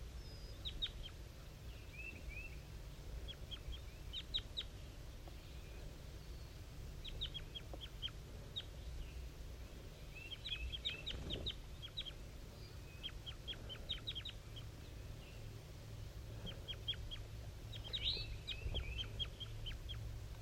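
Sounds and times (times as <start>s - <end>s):
wild bird chirping: 0.0s - 20.4s.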